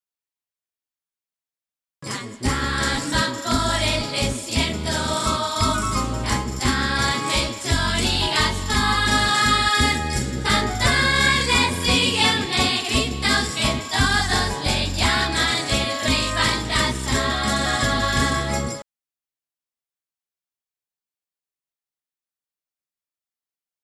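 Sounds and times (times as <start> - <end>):
song verse: 2.0 - 18.8.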